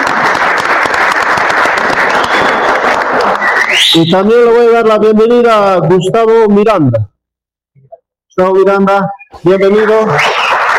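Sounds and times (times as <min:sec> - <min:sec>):
audience applause: 0:00.0 - 0:03.9, 0:09.9 - 0:10.7
speech: 0:03.9 - 0:07.1, 0:08.4 - 0:10.4.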